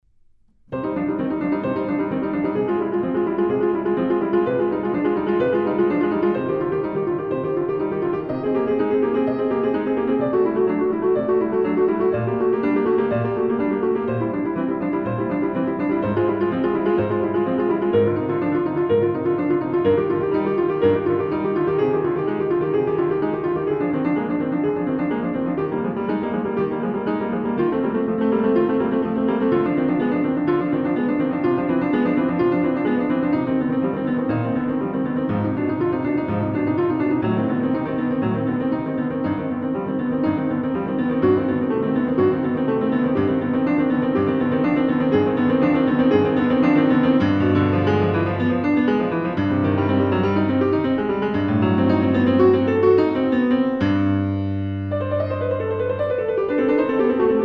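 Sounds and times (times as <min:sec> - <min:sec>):
prelude and fugue: 0:00.0 - 0:57.4.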